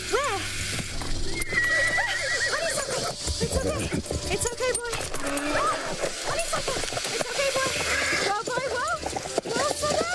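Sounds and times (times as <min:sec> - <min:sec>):
hoof clatter: 0:00.0 - 0:10.1
horse whinnying: 0:01.2 - 0:03.2, 0:05.1 - 0:06.0, 0:07.9 - 0:08.3.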